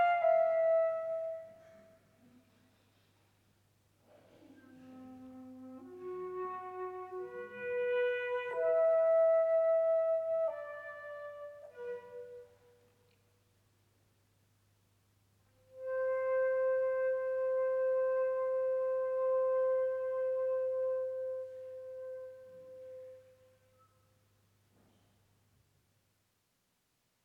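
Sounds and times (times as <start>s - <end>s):
transverse flute piece: 0.0s - 2.0s, 4.6s - 13.1s, 15.6s - 24.1s.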